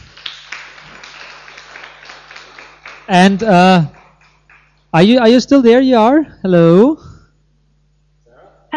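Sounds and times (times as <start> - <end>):
applause: 0.0 - 4.9
speech: 3.1 - 4.0, 4.9 - 7.1.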